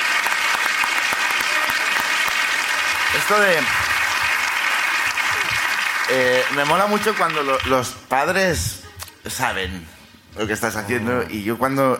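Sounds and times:
audience applause: 0.0 - 8.0
speech: 3.2 - 3.9, 6.1 - 11.9.

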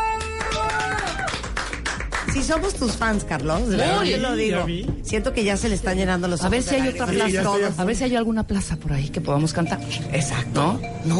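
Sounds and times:
applause: 0.0 - 3.7
speech: 2.4 - 11.1.

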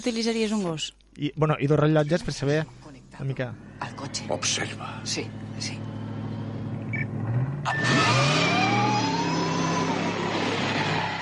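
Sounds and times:
speech: 0.0 - 5.9, 7.6 - 8.2
car accelerating to 140 miles per hour: 3.6 - 11.1.

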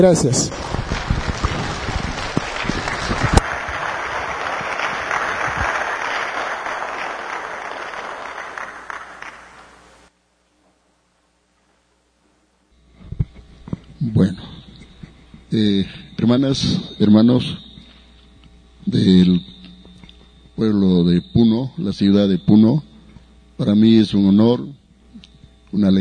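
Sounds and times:
speech: 0.0 - 0.8, 15.6 - 17.6, 18.9 - 19.5, 20.6 - 22.9, 23.6 - 24.8, 25.7 - 25.9
audience applause: 0.0 - 9.9.

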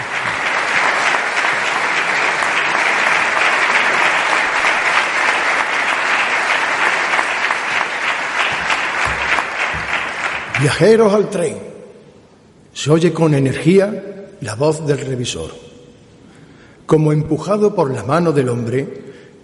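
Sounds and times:
audience applause: 0.0 - 11.1
speech: 10.6 - 11.7, 12.8 - 15.7, 16.9 - 19.0.

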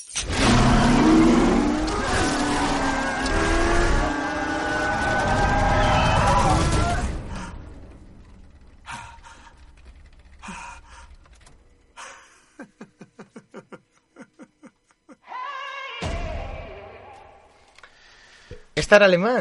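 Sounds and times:
car engine starting and revving: 0.1 - 12.0
laughter: 12.0 - 15.3
speech: 18.9 - 19.4.

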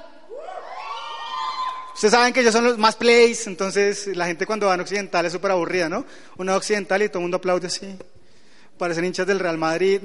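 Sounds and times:
live audience section cheering and shouting: 0.0 - 2.1
speech: 2.0 - 8.1, 8.8 - 10.0.

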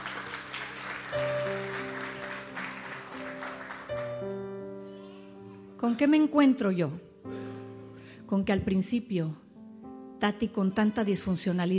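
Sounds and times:
audience applause: 0.0 - 4.5
speech: 5.8 - 7.4, 8.3 - 9.4, 10.2 - 11.7.

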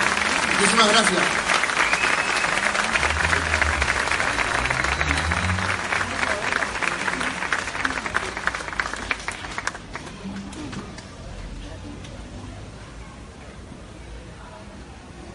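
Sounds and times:
audience applause: 0.0 - 11.2
speech: 0.6 - 1.5.

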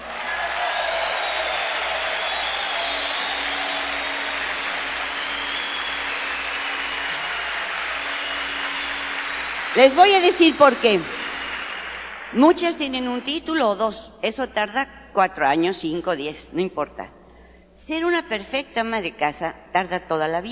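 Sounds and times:
audience applause: 0.0 - 12.8
speech: 9.8 - 11.2, 12.3 - 17.2, 17.8 - 20.5.

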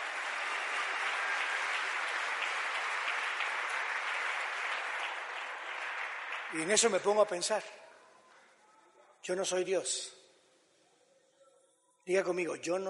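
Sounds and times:
audience applauding loudly: 0.0 - 7.6
speech: 6.5 - 7.9, 9.3 - 10.2, 12.0 - 12.8.

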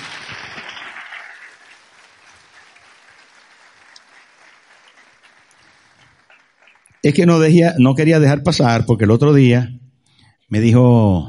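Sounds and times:
audience applause: 0.0 - 7.6
speech: 7.0 - 9.8, 10.5 - 11.2.

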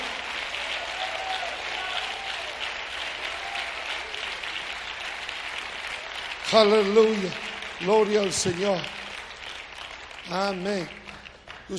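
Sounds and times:
audience applause: 0.0 - 11.7
speech: 6.5 - 9.0, 10.3 - 11.0.

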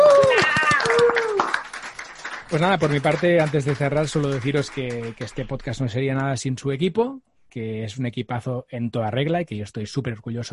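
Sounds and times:
voices whooping and cheering: 0.0 - 1.6
small group clapping: 0.0 - 5.9
speech: 2.5 - 10.5.

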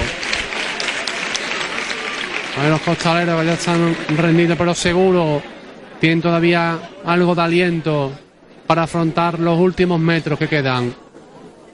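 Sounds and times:
applause from crowd outside the church of Santiago: 0.0 - 5.4
speech: 2.6 - 11.0.

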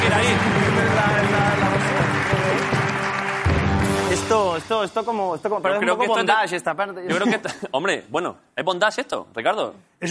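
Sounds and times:
crowd cheering and shouting: 0.0 - 4.2
crowd applauding: 0.0 - 4.8
speech: 4.7 - 10.0.

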